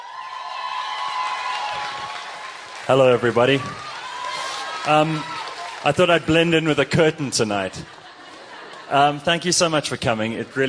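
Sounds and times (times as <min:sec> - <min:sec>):
audience cheering: 0:00.0 - 0:07.7
audience applause: 0:00.0 - 0:09.2
speech: 0:02.9 - 0:03.9, 0:04.8 - 0:08.0, 0:08.9 - 0:10.6
laughter: 0:07.1 - 0:10.6.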